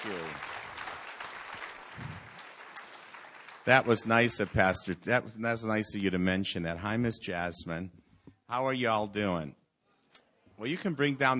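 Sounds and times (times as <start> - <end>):
audience applause welcoming a speaker: 0.0 - 4.9
speech: 3.7 - 9.6, 10.6 - 11.3.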